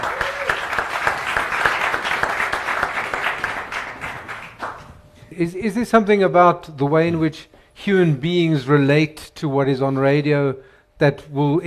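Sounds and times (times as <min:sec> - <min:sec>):
audience round of applause: 0:00.0 - 0:04.9
speech: 0:05.4 - 0:11.6.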